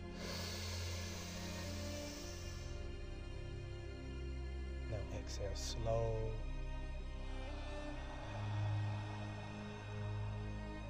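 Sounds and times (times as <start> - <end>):
deep inhale during a guided relaxation exercise: 0.0 - 2.8, 7.4 - 10.8
low sustained tonal background: 0.0 - 10.8
speech: 4.9 - 6.5.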